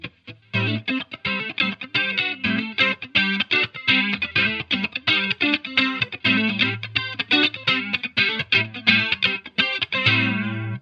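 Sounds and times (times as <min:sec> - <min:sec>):
funk music: 0:00.0 - 0:10.7.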